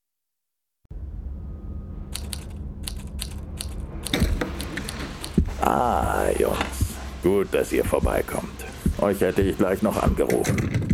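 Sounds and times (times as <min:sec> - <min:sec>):
steady low hum: 0:00.9 - 0:10.2
mechanical typewriter keystrokes: 0:02.2 - 0:05.4
speech: 0:05.6 - 0:10.9.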